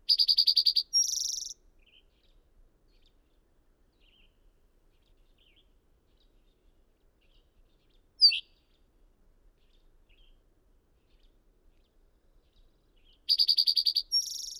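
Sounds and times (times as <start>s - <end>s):
bird singing: 0.1s - 1.6s, 7.2s - 8.8s, 13.0s - 14.5s.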